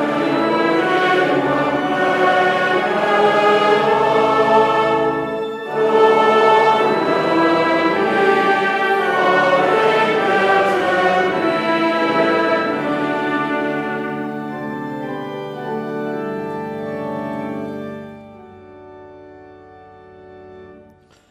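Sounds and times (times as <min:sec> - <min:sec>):
congregation singing: 0:00.0 - 0:16.5.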